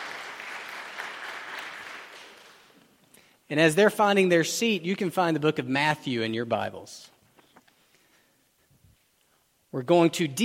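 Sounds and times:
church audience applause: 0.0s - 2.8s
speech: 3.5s - 7.1s, 9.7s - 10.4s.

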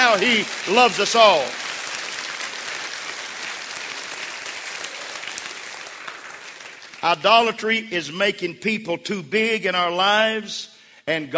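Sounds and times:
audience clapping: 0.0s - 7.6s
speech: 0.1s - 1.6s, 7.0s - 11.3s.

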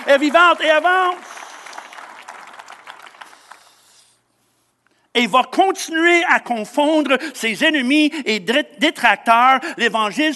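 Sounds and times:
audience applauding: 0.0s - 3.8s
speech: 0.1s - 1.3s, 5.2s - 10.3s.

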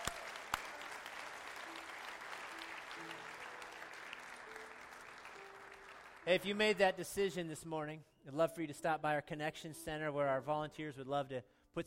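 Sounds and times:
audience applause: 0.0s - 6.5s
speech: 6.3s - 11.8s.

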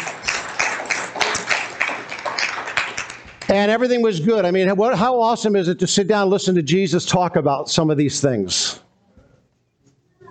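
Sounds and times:
audience clapping: 0.0s - 3.9s
speech: 3.5s - 8.8s.

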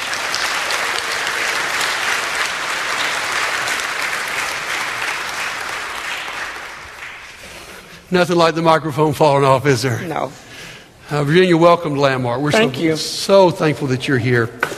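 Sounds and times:
audience applause for a nervous guest: 0.0s - 7.7s
speech: 8.1s - 10.4s, 11.1s - 14.7s.

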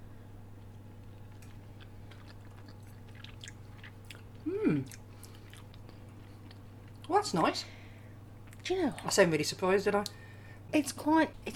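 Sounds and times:
moist chewing of baked sprats: 0.6s - 7.1s
speech: 7.2s - 7.8s, 8.7s - 11.5s.

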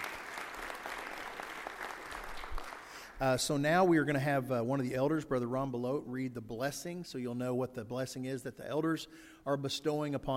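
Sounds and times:
crowd applause: 0.0s - 3.2s
speech: 3.2s - 10.3s.

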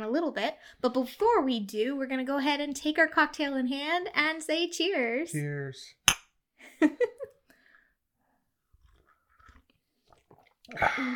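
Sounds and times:
speech: 0.0s - 6.0s, 6.7s - 7.2s, 10.7s - 11.1s
crunchy chewing of snack treats: 8.7s - 10.4s.

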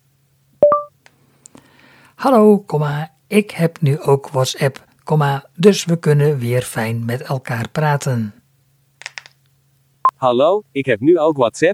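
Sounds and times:
phone two-tone electronic beep: 0.6s - 0.9s
speech: 2.2s - 8.4s, 10.2s - 11.7s.

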